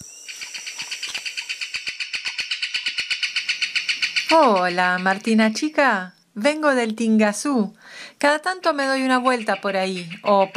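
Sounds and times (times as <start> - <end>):
kingfisher's loud dry rattling call in flight: 0.4 - 5.8, 8.5 - 10.5
speech: 4.3 - 10.5.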